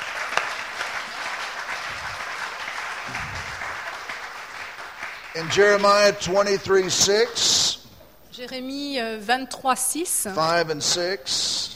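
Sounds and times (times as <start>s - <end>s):
audience applause: 0.0s - 7.3s
speech: 5.4s - 7.6s, 8.4s - 11.7s.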